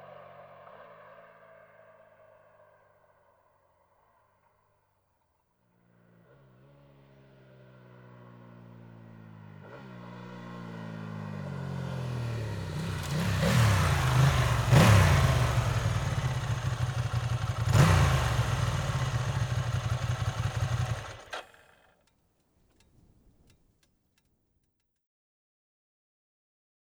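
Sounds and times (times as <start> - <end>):
Ducati ST2 motorcycle engine: 5.8 - 21.9.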